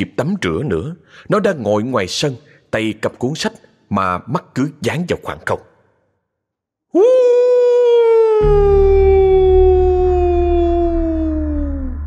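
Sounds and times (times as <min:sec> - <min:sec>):
speech: 0:00.0 - 0:05.7, 0:06.9 - 0:07.4, 0:08.4 - 0:09.2
long drawn-out howl: 0:07.2 - 0:12.0
low rumbling hum: 0:08.5 - 0:12.0.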